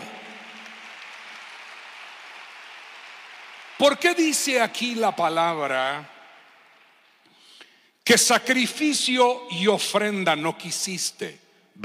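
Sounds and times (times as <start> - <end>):
audience applauding: 0.0 - 7.3
speech: 3.8 - 6.1, 8.0 - 11.8.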